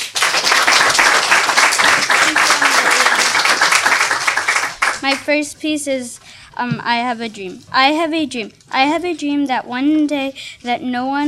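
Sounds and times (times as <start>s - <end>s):
crowd applauding: 0.0s - 5.2s
speech: 5.1s - 11.2s.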